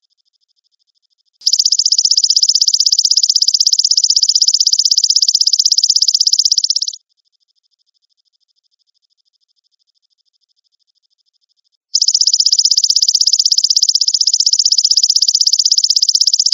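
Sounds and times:
grasshopper trilling: 1.4 - 7.0, 12.0 - 16.5.

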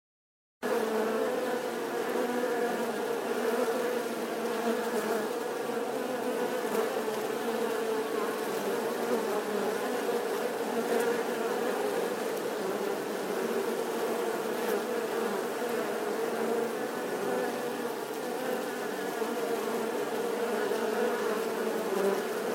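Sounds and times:
wasp swarm buzzing: 0.6 - 22.5.

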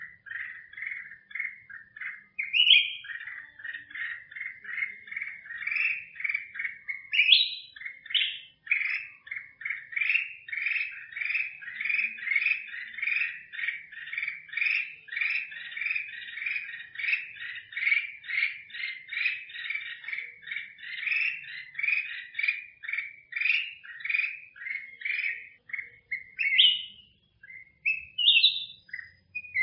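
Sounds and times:
black-crested bulbul singing: 0.0 - 29.6.

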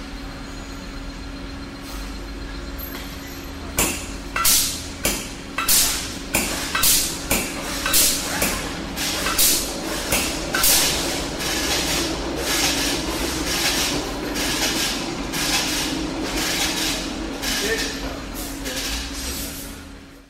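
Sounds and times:
noise at a vehicle repair garage: 0.0 - 20.2.

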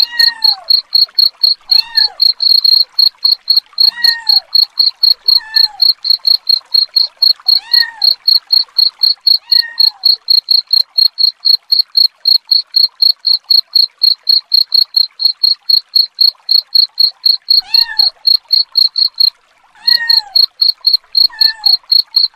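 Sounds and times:
cat meowing: 0.0 - 0.8, 1.6 - 2.3, 3.8 - 4.5, 5.2 - 5.9, 7.5 - 8.2, 9.4 - 10.1, 17.6 - 18.2, 19.8 - 20.5, 21.2 - 21.8
cricket chirping: 0.0 - 19.3, 19.9 - 22.3
speech: 0.2 - 2.2.

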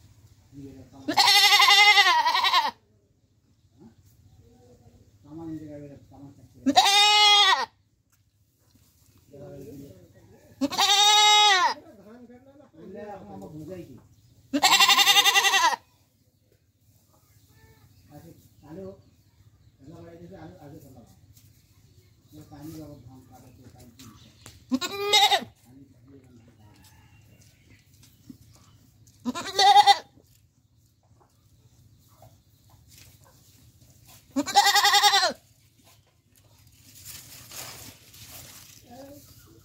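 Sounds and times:
goat bleating: 1.1 - 2.8, 6.6 - 7.8, 10.6 - 11.8, 14.5 - 15.9, 24.7 - 25.6, 29.2 - 30.2, 34.3 - 35.5.

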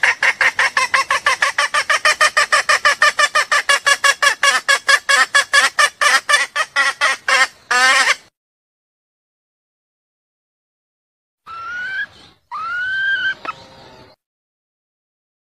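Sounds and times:
junglefowl clucking: 0.0 - 8.2, 11.5 - 13.6.

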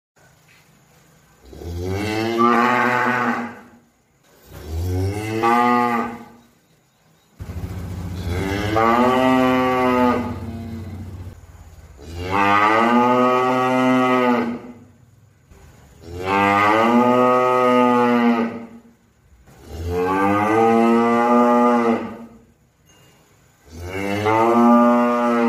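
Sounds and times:
cow mooing: 1.5 - 3.7, 4.6 - 6.4, 8.1 - 11.4, 12.0 - 14.9, 16.0 - 18.8, 19.6 - 22.4, 23.6 - 25.4.

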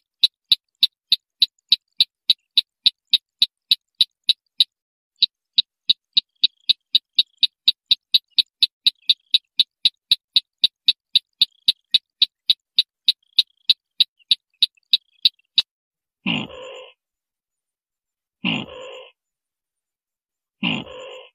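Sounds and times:
white-breasted waterhen train of sharp clicks: 0.0 - 15.7.

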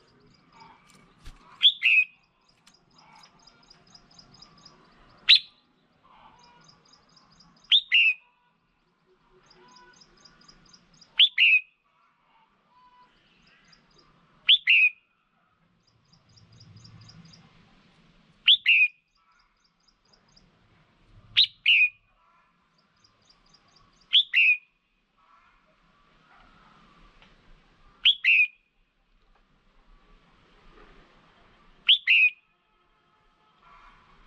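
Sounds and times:
red-whiskered bulbul calling: 0.0 - 8.3, 9.4 - 11.7, 18.5 - 19.5, 21.4 - 22.0, 23.2 - 24.6, 28.0 - 28.6, 31.9 - 32.4.

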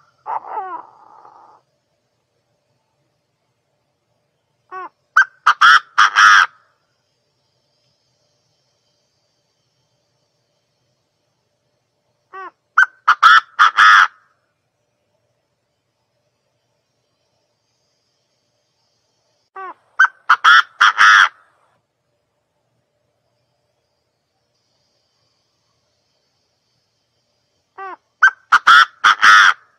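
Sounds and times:
partridge calling: 4.7 - 6.6, 12.3 - 14.2, 19.6 - 21.4, 27.8 - 29.7.

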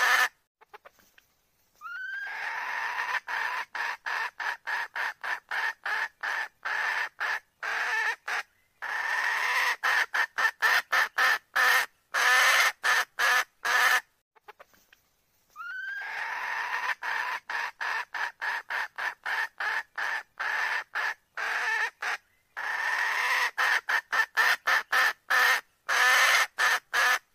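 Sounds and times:
red junglefowl hen cackling: 0.0 - 0.9, 1.8 - 14.6, 15.6 - 27.3.

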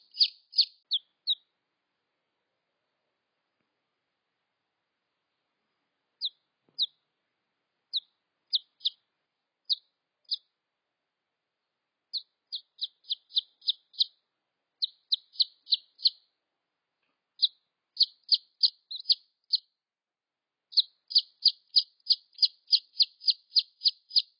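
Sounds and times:
red junglefowl chick peeps: 0.0 - 1.5, 6.2 - 7.0, 7.9 - 9.0, 9.7 - 10.5, 12.1 - 14.2, 14.8 - 16.3, 17.4 - 19.7, 20.7 - 24.3.

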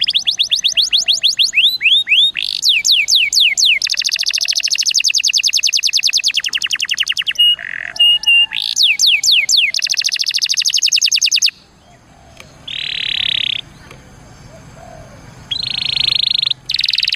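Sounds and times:
Atlantic canary song: 0.0 - 17.1.

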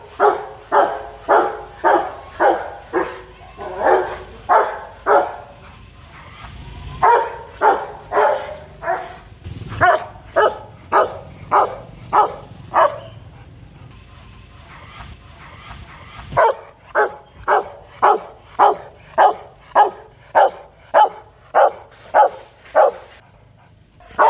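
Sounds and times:
dog barking: 0.1 - 5.6, 7.0 - 9.2, 9.8 - 13.2, 16.4 - 23.1.

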